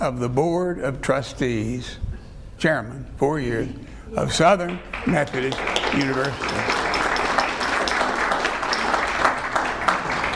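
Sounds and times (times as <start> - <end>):
speech: 0.0 - 6.7
crowd applauding: 4.6 - 10.3.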